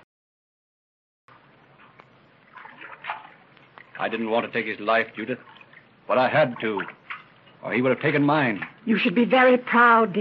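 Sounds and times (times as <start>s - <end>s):
water splashing as a canoe is paddled: 1.7s - 9.0s
speech: 4.0s - 7.0s, 7.6s - 10.1s.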